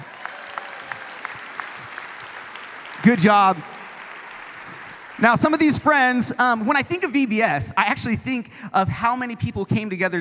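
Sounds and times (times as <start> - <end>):
audience applause: 0.0 - 6.3
speech: 3.0 - 3.7, 5.2 - 10.2.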